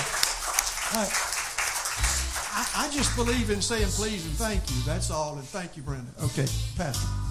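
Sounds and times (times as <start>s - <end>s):
church congregation applause thanking the organist: 0.0s - 4.2s
speech: 0.9s - 1.3s, 2.6s - 7.2s.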